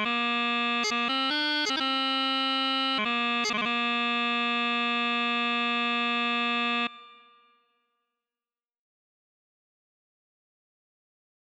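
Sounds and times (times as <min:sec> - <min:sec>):
pipe band chanter: 0:00.0 - 0:07.2.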